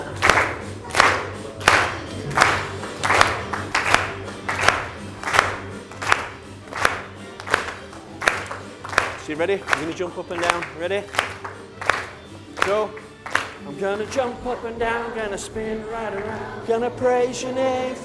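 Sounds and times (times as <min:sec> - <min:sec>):
audience clapping hands: 0:00.0 - 0:14.2
speech: 0:09.3 - 0:11.4, 0:12.7 - 0:13.0, 0:13.6 - 0:18.0.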